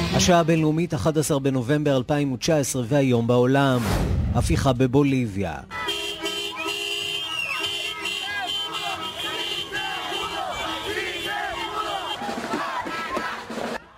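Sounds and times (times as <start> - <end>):
speech: 0.2 - 5.8
crowd cheering joyfully: 6.3 - 13.9.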